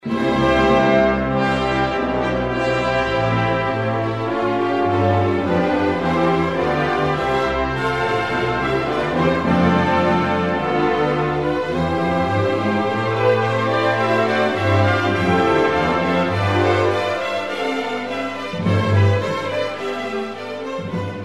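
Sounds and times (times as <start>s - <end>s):
classical music: 0.0s - 21.2s.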